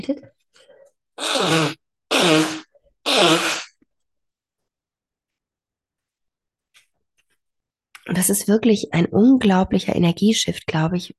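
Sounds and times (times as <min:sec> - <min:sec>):
speech: 0:00.0 - 0:00.3, 0:01.2 - 0:01.8, 0:08.2 - 0:11.1
person blowing nose: 0:01.2 - 0:03.8.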